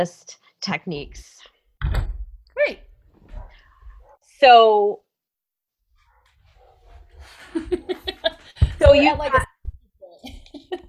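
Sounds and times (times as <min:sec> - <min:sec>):
speech: 0:00.0 - 0:02.0, 0:04.4 - 0:05.0, 0:07.3 - 0:08.1, 0:08.8 - 0:09.5
agitated dogs barking: 0:03.3 - 0:04.2, 0:06.0 - 0:08.4
laughter: 0:07.2 - 0:09.1, 0:10.1 - 0:10.8.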